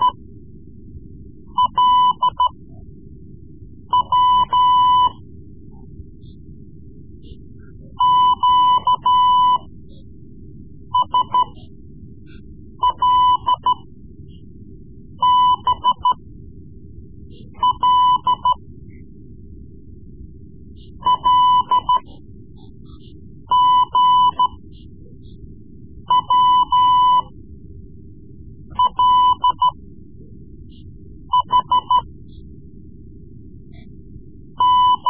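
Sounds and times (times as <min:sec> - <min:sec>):
Morse code lessons: 0:01.6 - 0:02.5, 0:04.0 - 0:05.2, 0:08.0 - 0:09.7, 0:11.0 - 0:11.6, 0:12.8 - 0:13.8, 0:15.2 - 0:16.1, 0:17.5 - 0:18.6, 0:21.0 - 0:22.2, 0:23.5 - 0:24.6, 0:26.1 - 0:27.3, 0:28.7 - 0:29.8, 0:31.3 - 0:32.0, 0:34.6 - 0:35.0.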